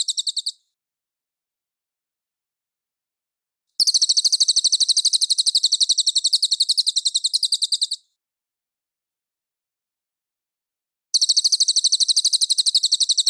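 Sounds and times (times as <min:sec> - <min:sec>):
mangrove whistler rattling trill: 0:00.0 - 0:00.5, 0:03.8 - 0:08.0, 0:11.2 - 0:13.2.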